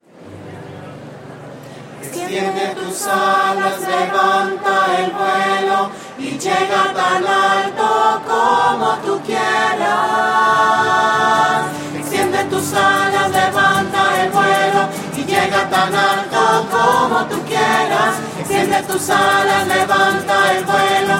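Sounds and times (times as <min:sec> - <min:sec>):
voices: 0:00.3 - 0:21.1.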